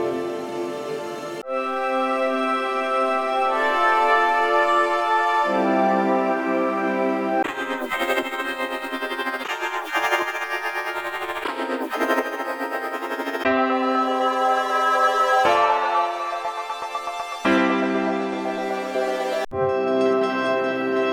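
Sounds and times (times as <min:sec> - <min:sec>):
augmented piano atmospheric pad: 0:00.0 - 0:21.1.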